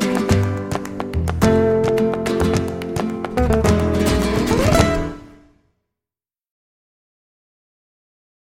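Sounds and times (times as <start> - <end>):
flamenco music: 0.0 - 5.6.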